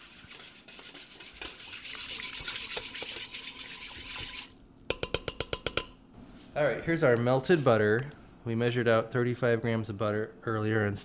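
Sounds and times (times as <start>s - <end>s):
whisking yeast mixture in a bowl: 0.0s - 6.0s
speech: 6.6s - 11.0s.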